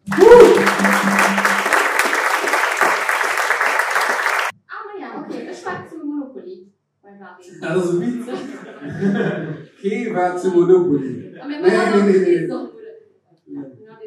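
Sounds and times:
evening show audience applause greeting a performer: 0:00.0 - 0:04.5
man talking and laughing: 0:07.5 - 0:12.4
speech: 0:10.2 - 0:12.7.

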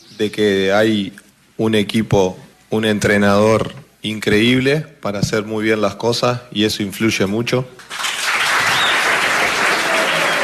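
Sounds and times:
speech: 0:00.2 - 0:07.8
crowd applause: 0:07.9 - 0:10.4.

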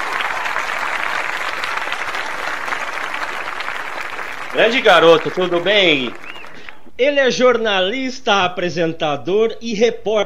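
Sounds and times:
audience applause: 0:00.0 - 0:06.8
speech: 0:04.6 - 0:06.2, 0:07.0 - 0:10.2.

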